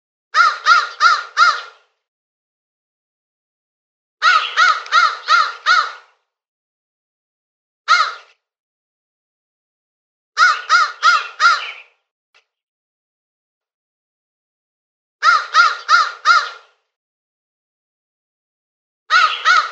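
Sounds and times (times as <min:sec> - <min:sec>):
crow cawing with harsh rasping notes: 0:00.4 - 0:01.8, 0:04.2 - 0:06.2, 0:07.9 - 0:08.4, 0:10.4 - 0:11.9, 0:15.2 - 0:16.8, 0:19.1 - 0:19.7.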